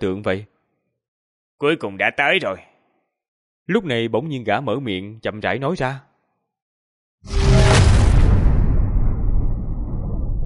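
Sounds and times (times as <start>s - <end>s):
speech: 0.0s - 0.5s, 1.6s - 2.7s, 3.7s - 6.1s, 7.2s - 7.6s
huge explosion boom: 7.3s - 10.4s.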